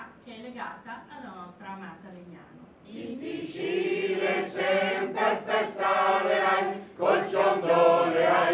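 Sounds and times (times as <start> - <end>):
choir singing: 2.9 - 8.5.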